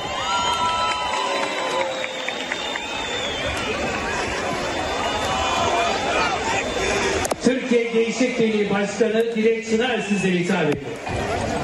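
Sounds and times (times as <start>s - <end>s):
audience applauding and cheering: 0.0s - 7.2s
speech: 7.7s - 11.5s.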